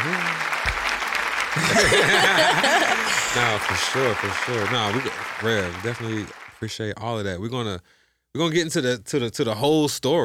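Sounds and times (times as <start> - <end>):
hand clapping: 0.0 - 6.6
laughter: 1.5 - 6.2
speech: 1.8 - 10.2.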